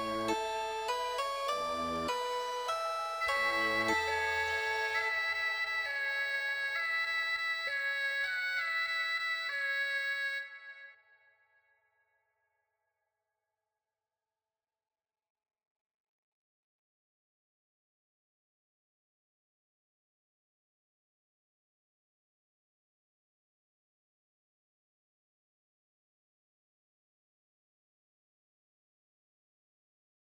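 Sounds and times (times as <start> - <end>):
music: 0.0 - 12.1.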